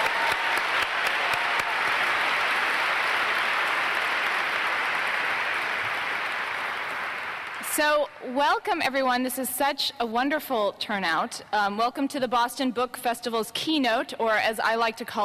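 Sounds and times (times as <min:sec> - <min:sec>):
audience applause: 0:00.0 - 0:07.8
speech: 0:07.8 - 0:15.2.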